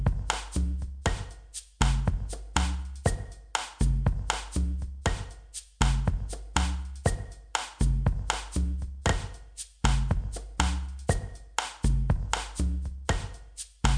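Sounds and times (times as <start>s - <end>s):
bossa nova drum percussion: 0.0s - 13.9s.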